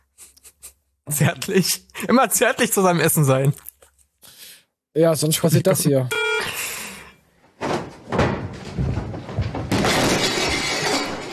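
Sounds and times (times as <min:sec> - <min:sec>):
speech: 0:01.1 - 0:03.7, 0:05.0 - 0:06.2
cupboard toppling with a loud crash: 0:07.6 - 0:11.3
glass shattering and tinkling: 0:08.2 - 0:11.3.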